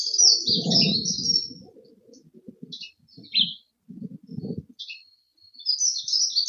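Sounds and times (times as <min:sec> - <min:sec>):
dunnock singing high warbled phrases: 0:00.1 - 0:03.4
soft low thumps: 0:00.4 - 0:04.7.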